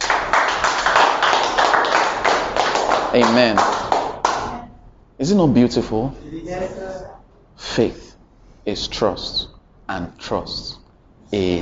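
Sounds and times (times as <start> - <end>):
audience clapping hands: 0.0 - 4.6
speech: 3.1 - 3.7, 5.2 - 8.0, 8.7 - 11.5.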